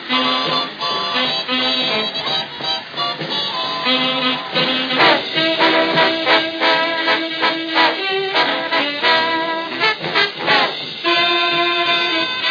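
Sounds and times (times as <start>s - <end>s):
jazz orchestra playing live: 0.0s - 12.4s.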